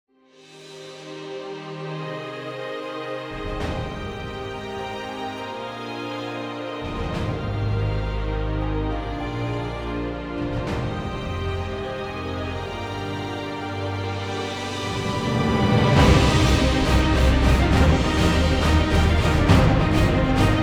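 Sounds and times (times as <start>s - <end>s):
trailer music: 0.4s - 20.6s.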